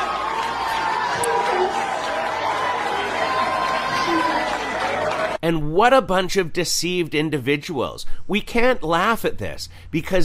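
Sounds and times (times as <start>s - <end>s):
large crowd cheering wildly: 0.0s - 5.4s
speech: 5.5s - 10.2s.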